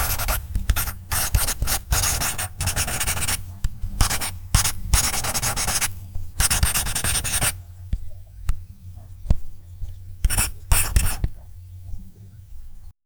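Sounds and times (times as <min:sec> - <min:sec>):
marker drawing: 0:00.0 - 0:03.4, 0:04.0 - 0:07.6, 0:10.3 - 0:11.3.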